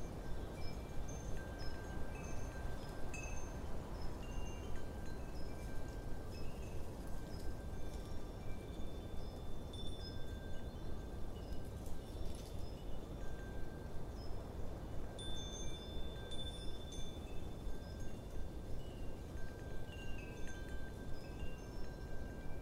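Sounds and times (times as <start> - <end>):
wind chimes ringing in an autumn wind: 0.0 - 22.5.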